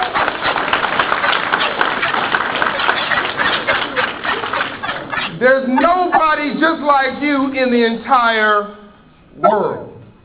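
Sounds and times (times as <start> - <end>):
audience applause: 0.0 - 5.3
speech: 5.4 - 8.8, 9.4 - 9.9.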